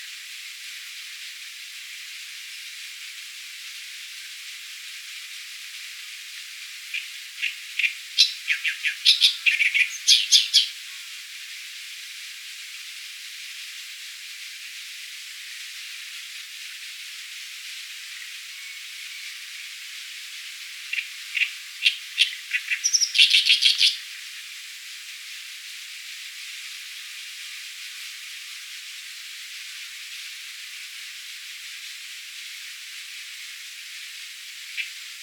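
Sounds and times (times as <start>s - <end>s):
Acrocephalus orientalis singing: 7.4s - 10.7s, 20.9s - 24.0s.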